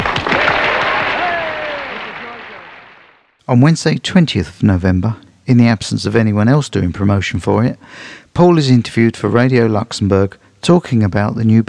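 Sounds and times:
clapping: 0.0s - 3.2s
speech: 3.5s - 11.6s.

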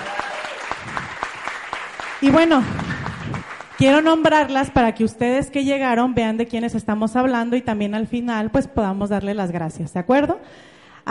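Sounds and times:
audience applause: 0.0s - 4.1s
speech: 2.2s - 2.8s, 3.8s - 11.0s.

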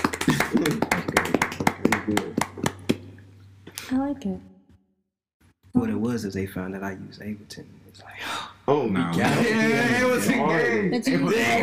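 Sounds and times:
hand clapping: 0.0s - 3.2s
speech: 0.5s - 0.9s, 3.9s - 4.5s, 5.8s - 11.6s.

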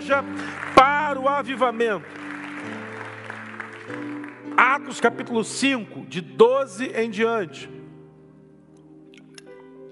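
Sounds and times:
speech: 0.0s - 2.8s, 3.9s - 7.8s
audience applauding: 0.0s - 5.1s
sustained keyboard or organ chords: 0.0s - 9.9s.

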